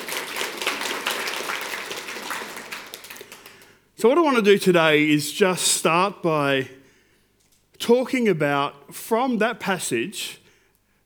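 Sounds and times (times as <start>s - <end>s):
audience clapping: 0.0s - 3.9s
speech: 4.0s - 6.8s, 7.9s - 10.4s.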